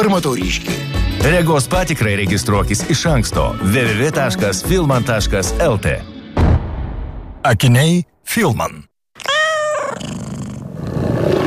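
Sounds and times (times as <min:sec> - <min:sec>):
speech: 0:00.0 - 0:06.1, 0:07.4 - 0:09.3
tiger growl in an advertisement: 0:09.8 - 0:11.4.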